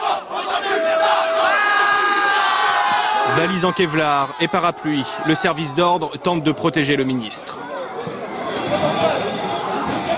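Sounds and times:
long drawn-out cry: 0:00.0 - 0:05.4
agitated crowd of young people shouting insults: 0:00.0 - 0:06.4, 0:07.4 - 0:10.1
speech: 0:03.4 - 0:07.5.

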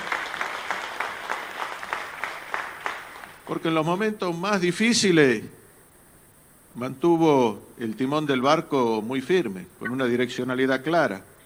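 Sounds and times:
audience applause for Argentina's president Alberto Fernández: 0:00.0 - 0:03.5
speech: 0:03.5 - 0:05.6, 0:06.8 - 0:11.3.

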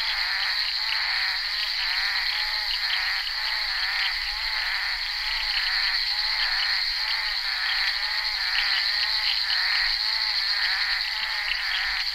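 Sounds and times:
bullfrog chorus croaking: 0:00.0 - 0:12.1.

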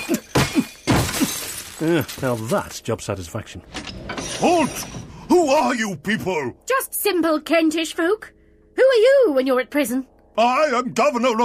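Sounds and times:
hammer smashing a crystal: 0:00.0 - 0:02.7
speech: 0:01.8 - 0:11.4.

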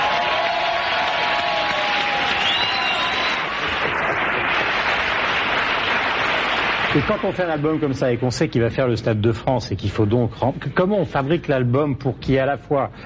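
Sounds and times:
audience applauding and cheering to welcome a singer: 0:00.0 - 0:08.2
speech: 0:07.0 - 0:13.0.

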